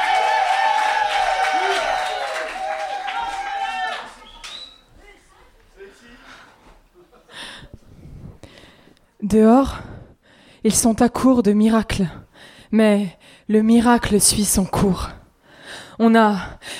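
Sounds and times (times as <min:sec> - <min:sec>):
audience applause: 0:00.0 - 0:04.7
speech: 0:09.3 - 0:09.9, 0:10.6 - 0:16.7.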